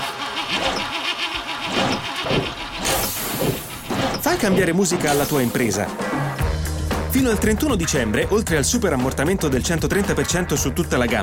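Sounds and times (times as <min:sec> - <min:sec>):
old commercial vehicle engine cranking and starting: 0:00.0 - 0:05.6
speech: 0:04.4 - 0:06.4, 0:07.1 - 0:11.2
bright hiss: 0:05.1 - 0:05.7.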